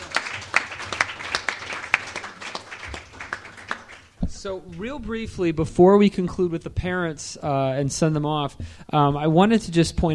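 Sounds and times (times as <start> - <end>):
audience applause: 0.0 - 4.2
speech: 4.4 - 10.1.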